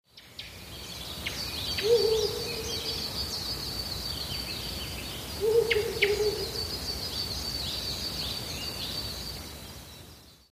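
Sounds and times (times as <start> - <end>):
background hiss: 0.1 - 10.5
Ural owl hooting: 1.8 - 3.0, 5.4 - 6.6.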